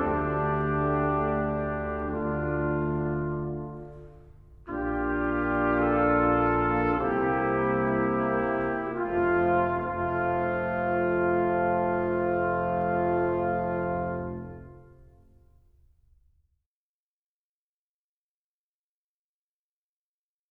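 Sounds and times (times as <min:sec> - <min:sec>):
brass ensemble playing a Christmas carol: 0:00.0 - 0:15.3.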